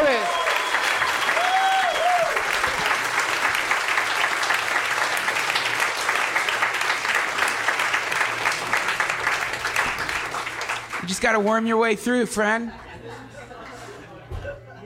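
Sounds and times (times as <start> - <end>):
audience applause: 0.0 - 11.7
whistles: 0.2 - 2.3
speech: 11.2 - 13.3
laughter: 12.6 - 14.8.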